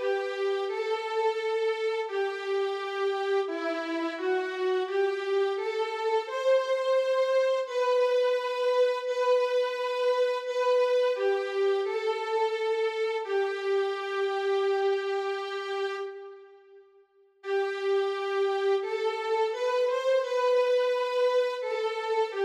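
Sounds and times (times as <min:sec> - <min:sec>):
violin playing slow foxtrot: 0:00.0 - 0:16.4, 0:17.5 - 0:22.4.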